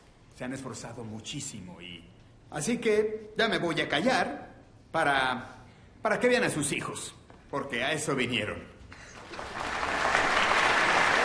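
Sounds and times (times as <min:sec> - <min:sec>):
speech: 0:00.4 - 0:08.7
audience applause before a school choir's annual autumn concert: 0:09.1 - 0:11.2.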